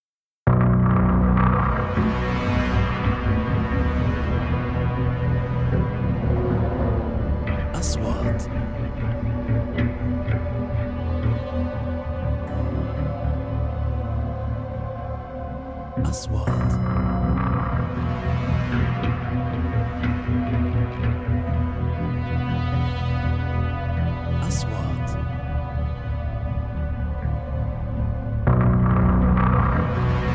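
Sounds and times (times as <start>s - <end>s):
horror music: 0.5s - 30.3s.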